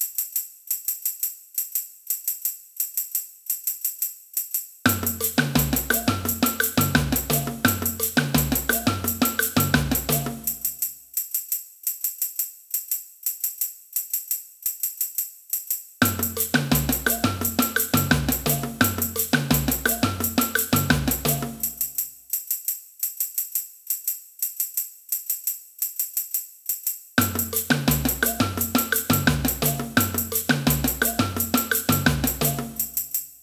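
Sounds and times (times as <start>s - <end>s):
samba band playing: 4.9s - 10.7s, 16.0s - 21.9s, 27.2s - 33.0s.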